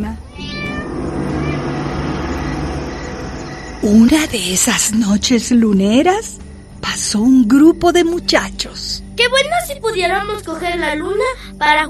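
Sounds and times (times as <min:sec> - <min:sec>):
cat meowing courting call: 0:00.2 - 0:03.0
speech: 0:03.8 - 0:11.8.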